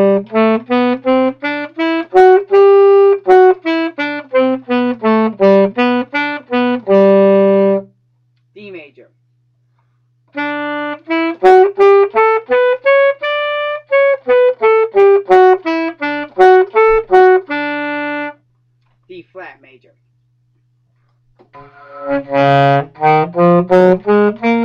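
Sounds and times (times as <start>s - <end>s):
saxophone playing scales: 0.0s - 7.9s, 10.3s - 18.4s, 21.4s - 24.6s.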